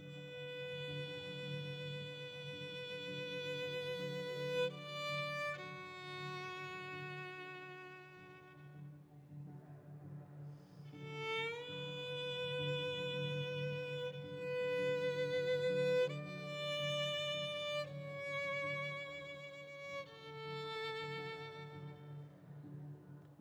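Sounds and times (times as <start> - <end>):
violin: 0.0 - 23.3.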